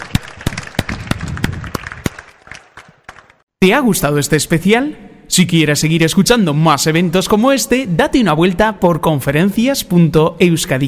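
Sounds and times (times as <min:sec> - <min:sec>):
audience applause: 0:00.0 - 0:03.4
speech: 0:03.6 - 0:10.8.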